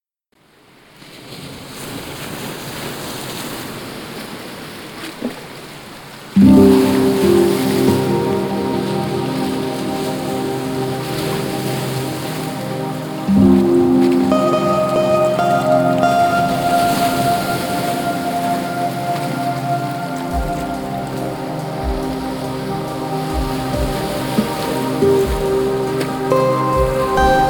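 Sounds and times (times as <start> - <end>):
chillout music: 6.4 - 27.4.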